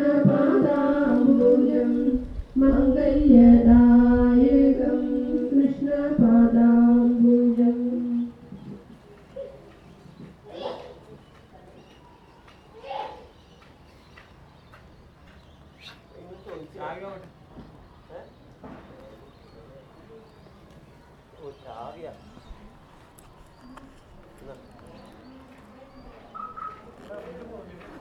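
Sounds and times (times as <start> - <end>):
Hindu chants on a street in South India: 0.0 - 8.4.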